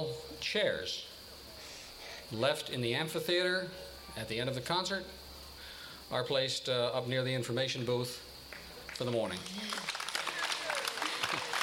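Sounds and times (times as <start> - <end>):
speech: 0.0 - 1.1, 2.3 - 5.2, 6.1 - 8.3, 9.0 - 9.8
audience applause: 8.5 - 11.6.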